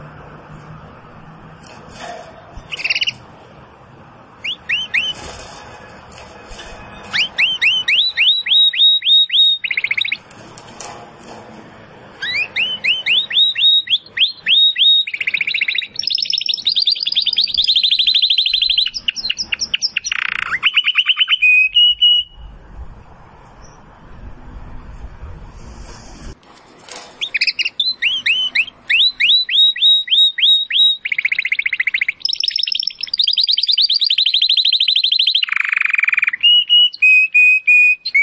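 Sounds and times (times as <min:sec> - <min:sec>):
domestic canary song: 0:01.5 - 0:03.6, 0:04.2 - 0:10.5, 0:12.0 - 0:22.7, 0:23.5 - 0:23.9, 0:27.2 - 0:38.2.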